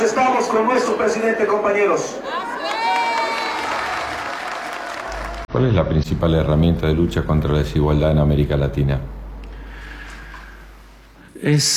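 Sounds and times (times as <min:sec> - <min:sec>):
speech: 0:00.0 - 0:02.6, 0:05.5 - 0:09.2, 0:11.4 - 0:11.7
crowd applause: 0:02.3 - 0:05.5.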